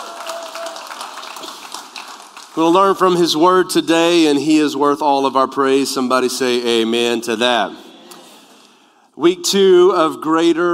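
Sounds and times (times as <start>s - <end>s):
audience clapping: 0.0s - 3.4s
speech: 2.6s - 7.8s, 9.2s - 10.7s.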